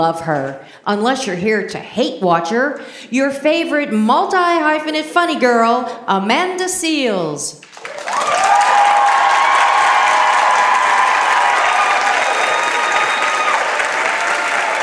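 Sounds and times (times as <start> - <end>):
speech: 0.0 - 8.4
audience applause and cheering: 7.6 - 14.8.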